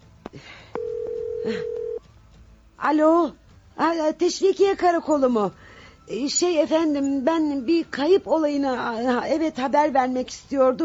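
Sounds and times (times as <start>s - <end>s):
speech: 0.3s - 0.6s, 1.4s - 1.8s, 2.8s - 10.8s
telephone tone: 0.8s - 2.0s.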